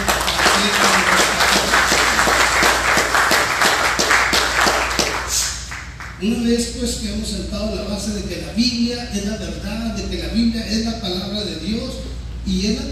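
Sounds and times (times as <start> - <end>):
loud audience applause from a large crowd: 0.0 - 6.1
speech: 6.2 - 12.9.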